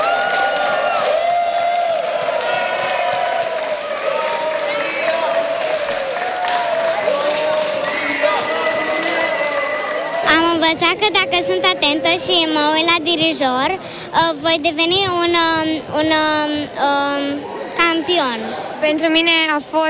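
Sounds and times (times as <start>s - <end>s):
crowd applauding and cheering at arrival: 0.0s - 12.3s
speech: 10.7s - 19.8s.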